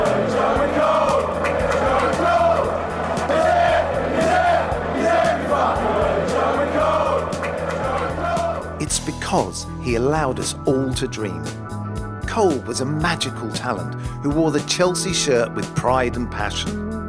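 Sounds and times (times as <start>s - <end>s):
stadium crowd chanting a player's name: 0.0s - 8.8s
speech: 9.3s - 11.8s, 12.4s - 16.8s.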